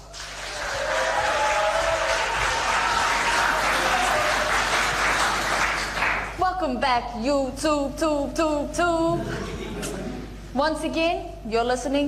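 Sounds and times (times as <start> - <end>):
talk show audience applause greeting a guest: 0.0 - 6.4
speech: 6.8 - 10.0, 10.6 - 12.0.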